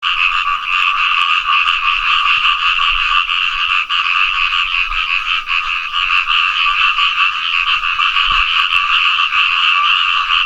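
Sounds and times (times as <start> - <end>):
Asian grass frog Fejervarya limnocharis chorus: 0.0 - 10.4.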